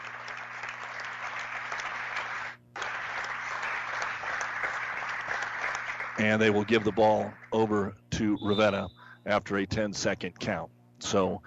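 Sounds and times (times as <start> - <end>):
gym crowd applauding: 0.0 - 7.6
speech: 6.2 - 11.4.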